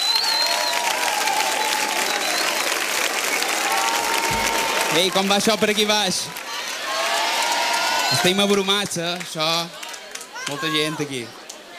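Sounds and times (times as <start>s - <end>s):
faint whistles and cheers: 0.0s - 5.3s, 6.6s - 8.8s
large audience applause: 0.0s - 10.7s
speech: 5.0s - 6.4s, 8.1s - 9.8s, 10.4s - 11.4s.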